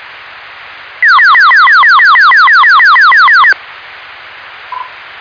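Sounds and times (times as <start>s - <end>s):
siren: 1.0s - 3.5s.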